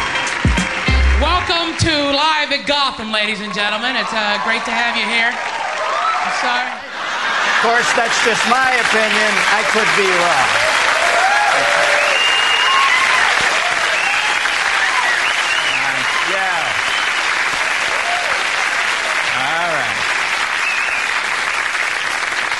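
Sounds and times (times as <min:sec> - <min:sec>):
loud audience applause: 0:00.0 - 0:01.4, 0:03.5 - 0:22.5
speech: 0:01.4 - 0:05.6, 0:06.2 - 0:06.9, 0:07.6 - 0:10.7
voices whooping: 0:03.5 - 0:06.8, 0:10.5 - 0:19.1
laughter: 0:06.4 - 0:10.6.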